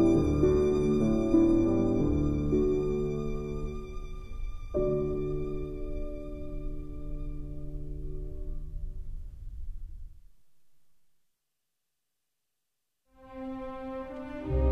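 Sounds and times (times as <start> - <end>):
violin: 0.0 - 8.2, 13.2 - 14.7
piano: 0.0 - 10.8, 13.2 - 14.7.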